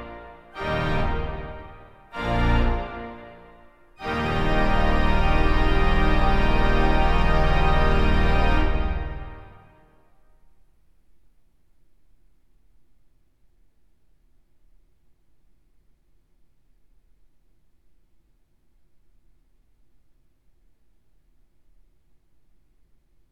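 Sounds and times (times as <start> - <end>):
organ sortie in E flat major: 0.0 - 9.9.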